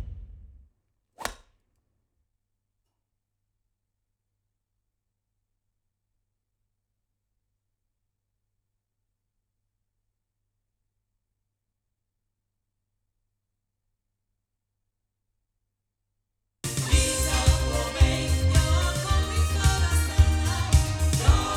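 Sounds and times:
sound from loudspeakers recorded with cardioid microphone: 16.7s - 21.5s.

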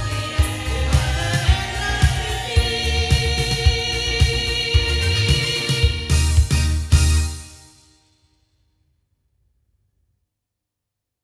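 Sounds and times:
loudspeakers: 0.0s - 7.3s.

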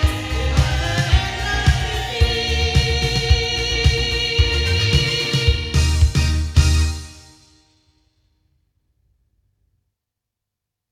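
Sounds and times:
loudspeakers: 0.0s - 7.1s.

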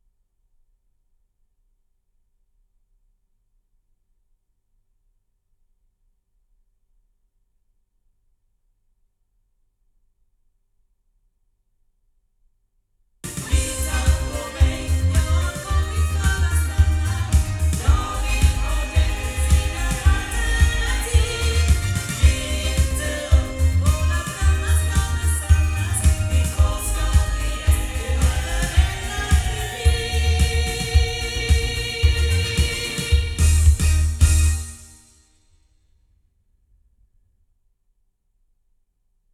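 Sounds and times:
sound from loudspeakers: 13.3s - 34.7s.

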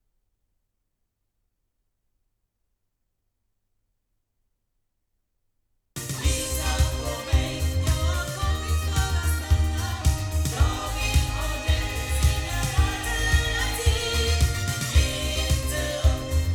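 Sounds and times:
loudspeaker sound recorded with microphones: 6.0s - 16.5s.

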